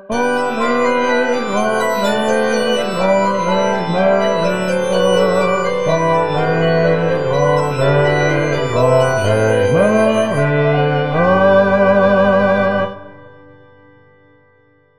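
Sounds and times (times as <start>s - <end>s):
Christmas carol bass part: 0.1s - 14.4s.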